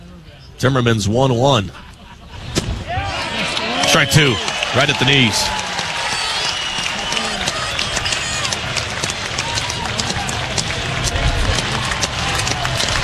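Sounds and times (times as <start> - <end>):
murmur of voices: 0.0 - 13.0
speech: 0.6 - 1.9, 4.0 - 5.6
ballpark crowd clapping: 3.5 - 13.0.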